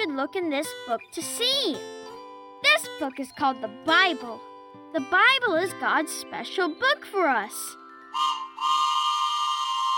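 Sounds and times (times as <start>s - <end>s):
speech: 0.2s - 2.0s, 2.7s - 8.3s
steam train whistle: 8.1s - 9.9s.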